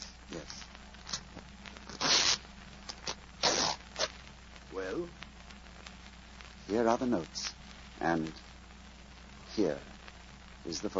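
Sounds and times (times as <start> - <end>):
lining of a jacket's breast pocket being cut open: 1.9 - 4.2
speech: 6.7 - 7.4, 8.0 - 8.4, 9.6 - 9.9, 10.6 - 10.9.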